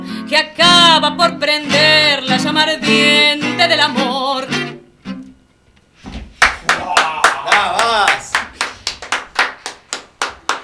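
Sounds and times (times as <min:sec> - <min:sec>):
speech: 0:00.3 - 0:04.5
rhythmic clapping from people outside: 0:06.4 - 0:10.6.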